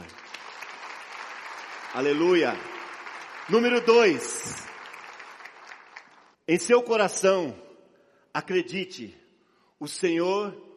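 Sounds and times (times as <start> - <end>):
audience applauding: 0.0 - 6.4
speech: 2.0 - 2.7, 3.5 - 4.7, 6.5 - 7.6, 8.4 - 9.2, 9.8 - 10.7.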